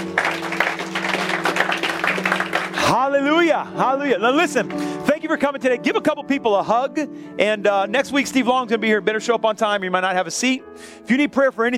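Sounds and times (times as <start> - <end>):
audience clapping: 0.0 - 3.0
speech: 3.5 - 11.7.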